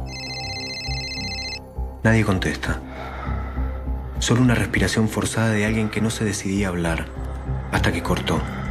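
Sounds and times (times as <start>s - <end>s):
telephone ringing: 0.0s - 1.8s
speech: 2.0s - 3.1s, 4.2s - 8.6s.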